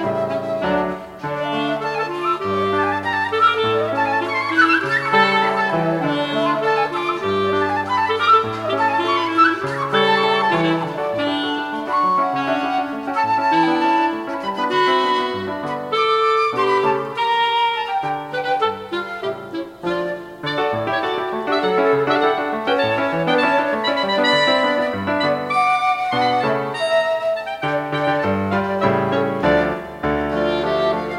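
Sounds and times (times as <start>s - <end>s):
clarinet in a trio: 0.0s - 31.1s
flute in a trio: 0.0s - 31.1s
piano in a trio: 0.0s - 31.1s.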